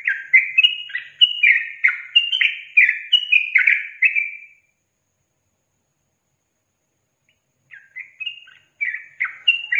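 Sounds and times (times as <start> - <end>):
yellow-vented bulbul singing chattering slurred phrases: 0.0 - 4.7, 7.3 - 9.7.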